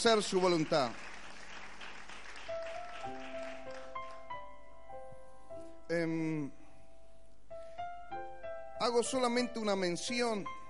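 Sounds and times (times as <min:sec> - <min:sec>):
speech: 0:00.0 - 0:01.1, 0:05.9 - 0:06.6, 0:08.8 - 0:10.6
crowd clapping: 0:00.0 - 0:04.3.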